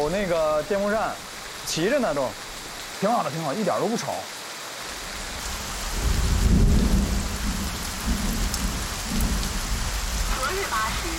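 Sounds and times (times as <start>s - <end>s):
speech: 0.0s - 2.4s, 3.0s - 4.4s, 10.6s - 11.1s
heavy rain: 0.0s - 11.1s
deep thunder rumbling: 5.4s - 11.1s.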